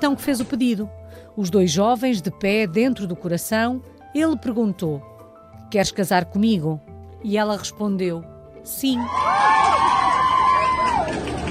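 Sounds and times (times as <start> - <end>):
speech: 0.0 - 5.1, 5.7 - 9.6
crowd of onlookers cheering and whooping: 9.0 - 11.4.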